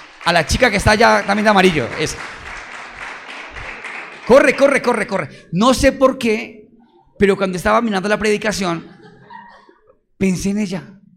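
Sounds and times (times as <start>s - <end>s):
crowd applauding: 0.0s - 5.4s
speech: 0.2s - 2.4s, 4.3s - 6.6s, 7.2s - 8.9s, 10.2s - 11.0s
laughter: 8.5s - 10.0s.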